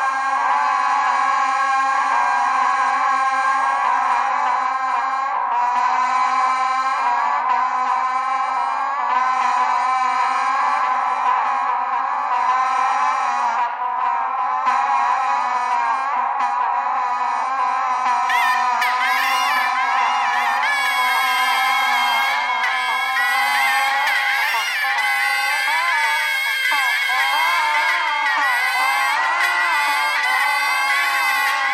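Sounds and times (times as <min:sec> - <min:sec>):
geese honking: 0:00.0 - 0:31.7
bagpipe playing: 0:18.0 - 0:31.7.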